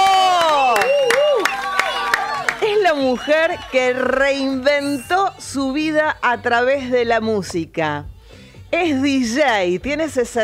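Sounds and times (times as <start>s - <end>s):
shouting voices: 0.0s - 5.0s
studio audience applause welcoming a guest: 0.0s - 5.0s
speech: 3.1s - 8.1s, 8.7s - 10.4s.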